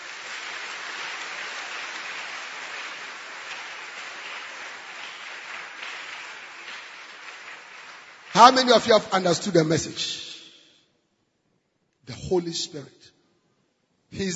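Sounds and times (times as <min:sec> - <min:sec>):
audience clapping: 0:00.0 - 0:10.4
speech: 0:08.4 - 0:10.3, 0:12.3 - 0:13.2, 0:14.1 - 0:14.3.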